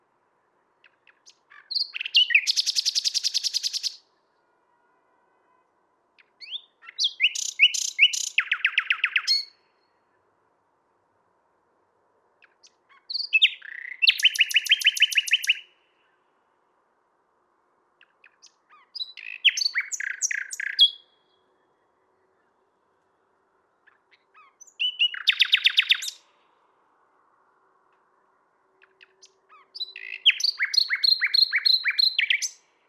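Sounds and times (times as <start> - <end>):
common nightingale singing: 0.8 - 4.3, 6.2 - 9.9, 12.4 - 16.3, 18.0 - 22.6, 23.8 - 26.6, 27.8 - 32.8.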